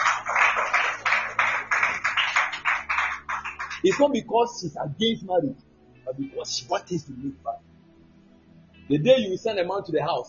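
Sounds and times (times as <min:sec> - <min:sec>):
audience clapping: 0:00.0 - 0:04.2
speech: 0:03.8 - 0:07.5, 0:08.9 - 0:10.2.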